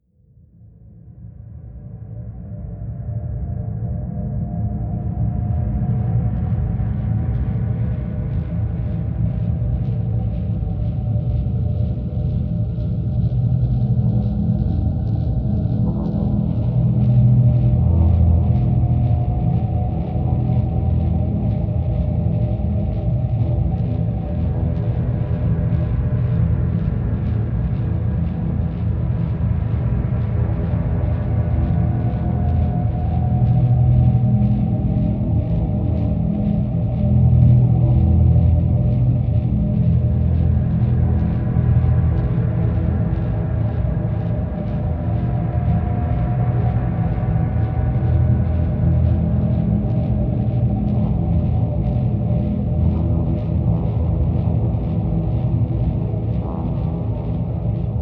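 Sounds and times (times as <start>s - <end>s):
hypersleep drone in E: 2.0s - 58.0s.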